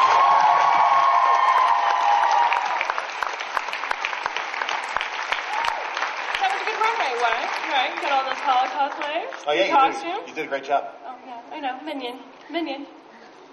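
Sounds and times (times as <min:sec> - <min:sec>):
audience applause: 0:00.0 - 0:10.1
speech: 0:08.5 - 0:11.0, 0:11.6 - 0:13.0.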